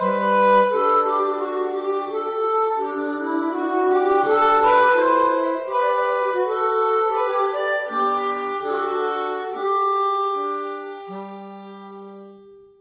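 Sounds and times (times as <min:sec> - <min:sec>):
minuet played on harmonica: 0:00.0 - 0:12.7.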